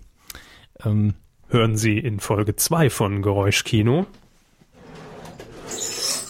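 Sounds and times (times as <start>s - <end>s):
speech: 0.8s - 4.2s
wooden drawer scraping as it slides: 4.8s - 6.2s.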